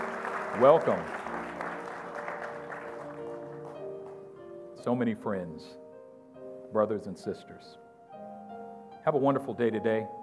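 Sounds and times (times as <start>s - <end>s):
church gathering clapping: 0.0s - 4.4s
speech: 0.6s - 1.2s, 4.8s - 5.8s, 6.7s - 7.8s, 9.0s - 10.2s.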